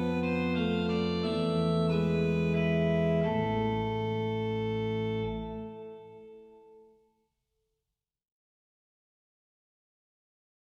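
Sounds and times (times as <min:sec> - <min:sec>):
easy organ piece: 0:00.0 - 0:06.9.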